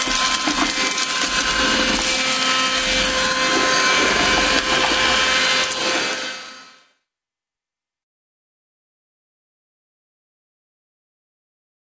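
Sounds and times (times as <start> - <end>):
vacuum cleaner running: 0.0 - 6.9.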